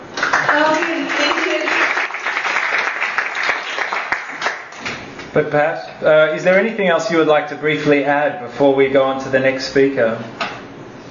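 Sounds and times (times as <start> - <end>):
crowd applauding: 0.0 - 4.8
speech: 5.4 - 10.4.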